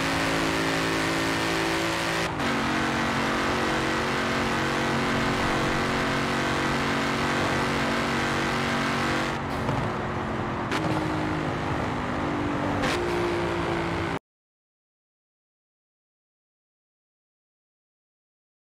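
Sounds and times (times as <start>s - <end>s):
Ford Mustang engine: 0.0s - 14.2s.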